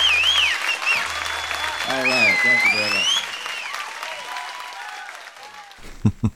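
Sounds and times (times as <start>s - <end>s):
high whistles: 0.0s - 3.9s
fan crowd applauding: 0.0s - 6.3s
speech: 1.9s - 3.2s, 6.0s - 6.3s
laughter: 5.8s - 6.3s.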